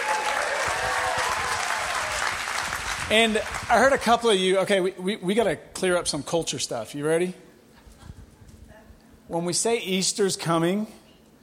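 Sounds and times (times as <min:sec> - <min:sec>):
audience cheering and whooping: 0:00.0 - 0:03.7
audience clapping: 0:00.0 - 0:04.2
speech: 0:03.1 - 0:07.5, 0:09.3 - 0:11.0.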